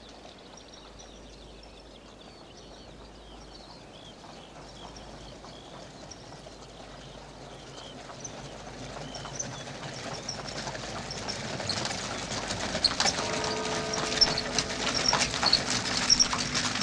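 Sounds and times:
hooves of four white horses clip-clopping on a road: 0.0s - 16.8s
carriage drawn by four white horses rattling along a road: 10.1s - 16.8s
sustained tones: 12.8s - 16.8s.

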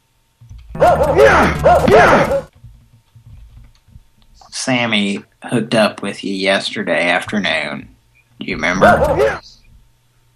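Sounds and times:
dog barking with wavering tonal pitch: 0.8s - 2.5s, 8.7s - 9.4s
speech: 0.9s - 2.4s, 4.7s - 9.6s.

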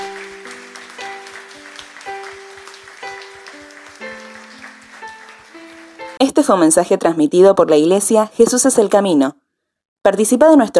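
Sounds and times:
audience applauding: 0.0s - 6.2s
speech: 6.2s - 9.4s, 10.0s - 10.7s.

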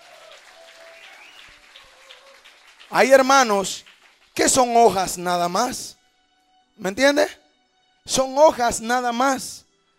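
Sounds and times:
church congregation clapping during a sermon: 0.0s - 5.5s
speech: 2.9s - 5.9s, 6.8s - 7.4s, 8.0s - 9.6s.

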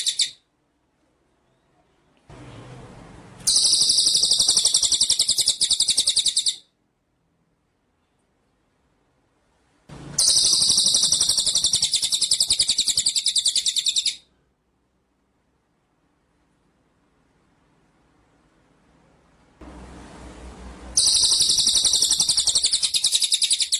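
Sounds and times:
white-rumped shama singing: 0.0s - 0.4s, 3.5s - 6.7s, 10.2s - 14.3s, 21.0s - 23.7s.

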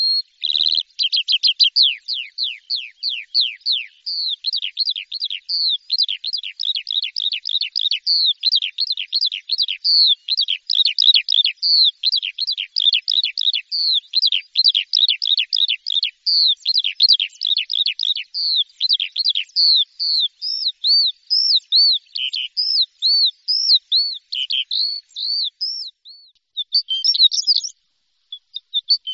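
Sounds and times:
bird song: 0.0s - 29.1s.

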